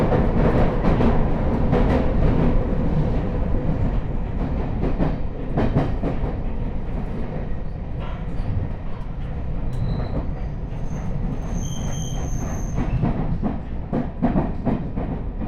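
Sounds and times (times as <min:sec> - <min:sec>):
London Underground train: 0:00.0 - 0:15.4.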